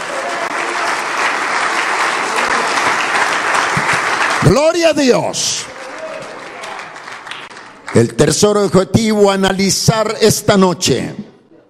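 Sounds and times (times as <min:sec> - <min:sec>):
audience applauding: 0:00.0 - 0:08.2
speech: 0:04.4 - 0:05.7, 0:08.0 - 0:11.3.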